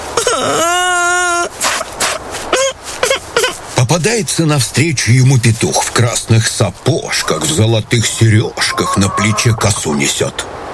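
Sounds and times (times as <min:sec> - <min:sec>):
narrator imitating a hare crying: 0:00.2 - 0:01.8, 0:07.2 - 0:10.1
speech: 0:03.9 - 0:10.6.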